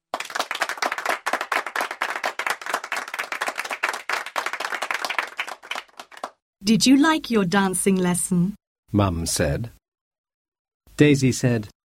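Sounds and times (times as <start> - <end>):
group clapping hands: 0.0 - 6.4
speech: 6.6 - 9.8, 11.0 - 11.7.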